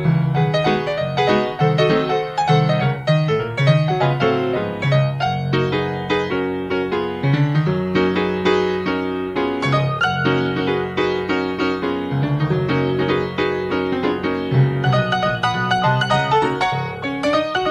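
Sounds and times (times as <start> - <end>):
player piano: 0.0 - 17.6.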